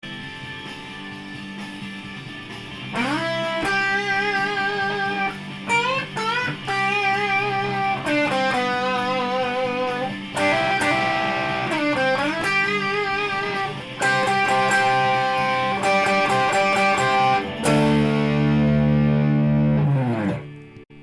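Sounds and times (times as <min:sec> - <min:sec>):
solo guitar: 0:00.0 - 0:21.0.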